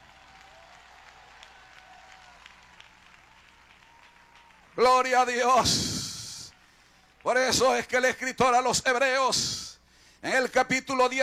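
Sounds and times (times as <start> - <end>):
audience applause: 0.0 - 7.7
speech: 4.8 - 6.0, 7.2 - 9.6, 10.2 - 11.2.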